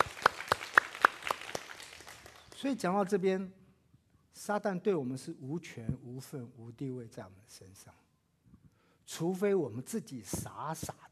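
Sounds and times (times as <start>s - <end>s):
rhythmic clapping during a church service: 0.0s - 2.8s
speech: 2.6s - 3.6s, 4.4s - 8.0s, 9.1s - 11.0s.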